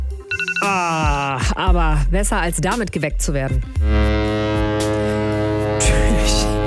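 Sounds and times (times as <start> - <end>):
speech: 0.6 - 4.3
ship foghorn blast: 3.8 - 6.6.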